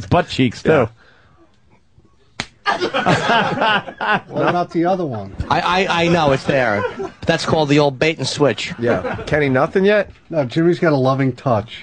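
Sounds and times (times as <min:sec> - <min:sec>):
speech: 0:00.0 - 0:01.0, 0:02.7 - 0:11.8
hand slapping a person: 0:02.4 - 0:02.6
laughter: 0:02.6 - 0:10.0.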